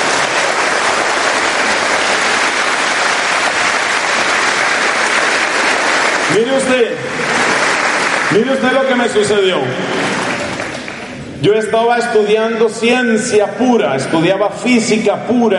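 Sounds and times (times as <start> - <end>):
audience applause: 0.0 - 11.2
speech: 6.4 - 7.4, 8.3 - 10.2, 11.4 - 15.5.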